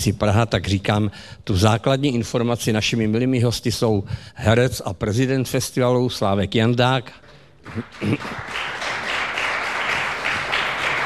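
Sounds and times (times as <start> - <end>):
speech: 0.0 - 8.7
audience applause in a club: 7.7 - 11.0.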